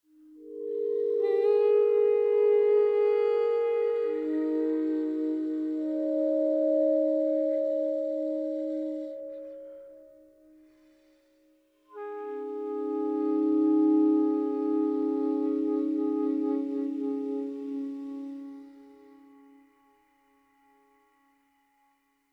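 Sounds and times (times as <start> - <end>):
synth pads: 0.3 - 10.6, 11.9 - 19.1
toy flute: 0.4 - 10.3, 11.9 - 19.6.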